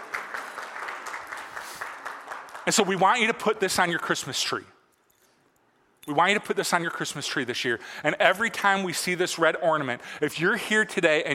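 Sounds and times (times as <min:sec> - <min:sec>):
audience applause: 0:00.0 - 0:02.8
speech: 0:02.6 - 0:04.8, 0:06.1 - 0:11.3.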